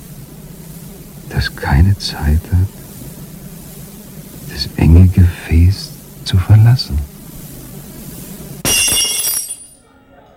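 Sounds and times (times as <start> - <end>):
speech: 1.3 - 2.8, 4.6 - 7.1
drinking glass shattering: 8.6 - 9.8.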